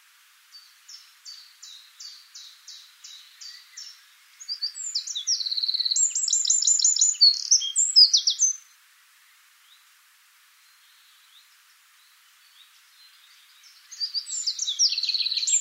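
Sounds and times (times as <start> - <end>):
Eurasian wren Troglodytes troglodytes singing: 0.5 - 8.7, 12.4 - 15.5.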